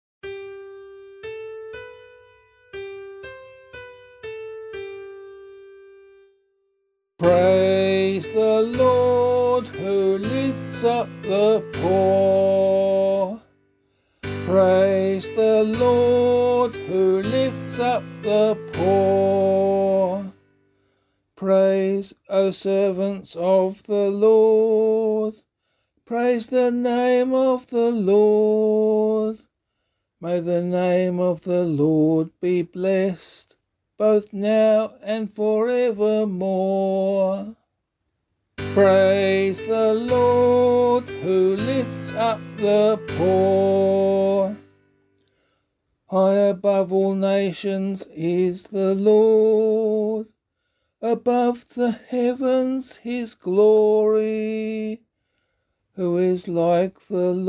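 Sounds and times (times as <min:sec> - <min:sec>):
psalm in C sung by voice: 0:07.2 - 0:13.6, 0:14.2 - 0:20.6, 0:21.4 - 0:25.4, 0:26.0 - 0:29.5, 0:30.2 - 0:37.6, 0:38.6 - 0:44.9, 0:46.1 - 0:50.3, 0:51.0 - 0:55.0, 0:56.0 - 0:57.4.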